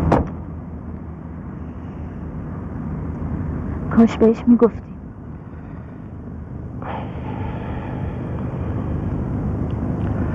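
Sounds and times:
car door shutting as a person gets into a car: 0.0 - 0.4
low car engine rumble: 0.0 - 10.3
speech: 4.0 - 4.9.

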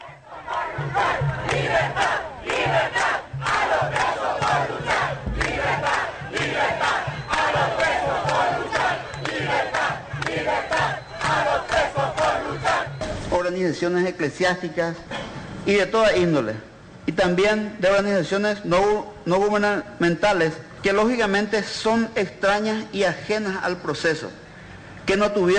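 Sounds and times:
large street crowd shouting at the government: 0.0 - 13.2
speech: 13.6 - 24.4, 25.1 - 25.5.

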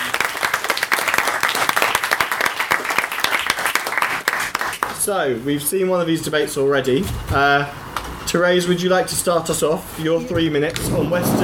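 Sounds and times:
audience at a schools debating competition applauding the judges: 0.0 - 5.0
speech: 5.1 - 11.4.

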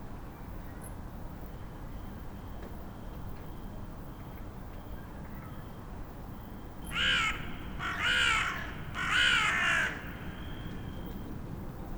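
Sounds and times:
group of crows cawing on a crane at a construction site in Vienna: 6.9 - 11.0.

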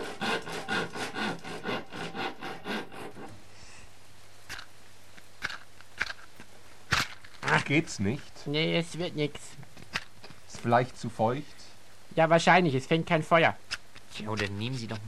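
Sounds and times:
saw cutting through wood: 0.0 - 3.4
speech: 7.6 - 9.6, 10.6 - 11.6, 12.2 - 13.6, 14.2 - 15.0.

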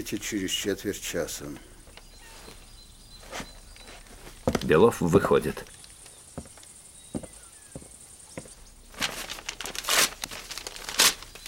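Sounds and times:
speech: 0.0 - 1.7, 4.6 - 5.7
general tearing up a sheet of paper: 9.0 - 11.4.

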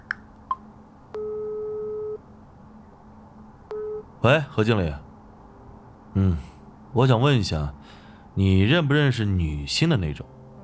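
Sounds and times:
phone beeps: 1.2 - 2.2, 3.7 - 4.1
speech: 4.2 - 5.0, 6.2 - 10.4.

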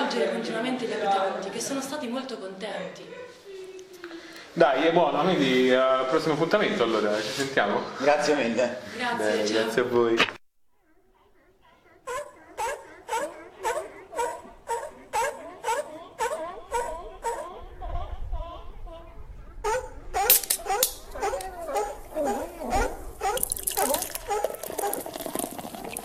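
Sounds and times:
speech: 0.2 - 3.4, 4.6 - 10.4
seals barking: 10.8 - 26.0
splashing slurping water as seals drink: 23.2 - 26.0.

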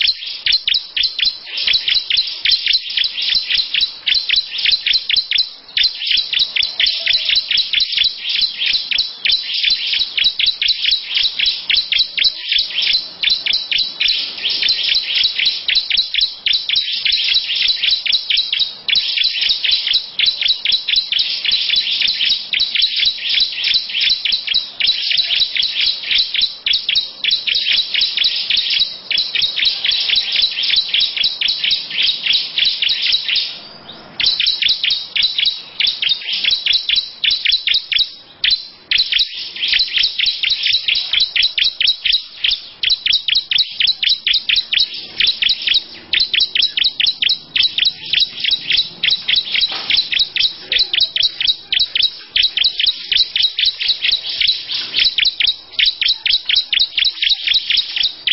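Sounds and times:
lovebird chirping: 0.0 - 58.3.

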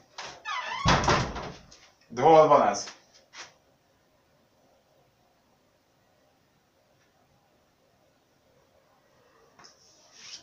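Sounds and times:
door being closed: 0.2 - 1.7
speech: 2.1 - 3.0.

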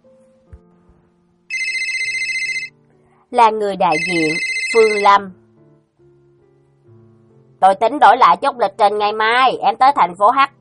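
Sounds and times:
mobile phone high-pitched warbling ringtone: 1.5 - 2.7, 3.9 - 5.2
speech: 3.3 - 5.4, 7.6 - 10.5.

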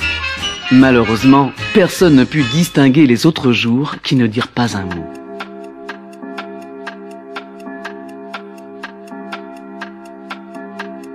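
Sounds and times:
speech: 0.7 - 5.2
clock striking the hour: 3.5 - 11.1.

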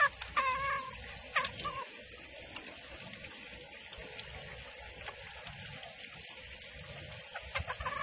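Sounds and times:
female junglefowl call used as a lure for trapping in the forest: 0.0 - 1.9, 7.3 - 8.0.

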